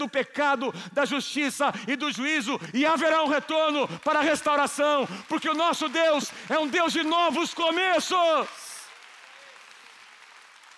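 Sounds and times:
speech: 0.0 - 8.6
audience applauding: 3.2 - 10.7.

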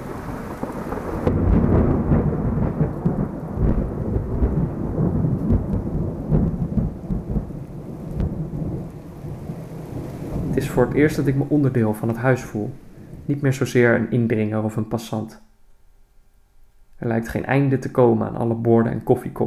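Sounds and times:
deep rolling thunder in a thunderstorm: 0.0 - 14.8
steady rain hissing: 0.0 - 19.4
speech: 10.8 - 15.5, 17.0 - 19.4.

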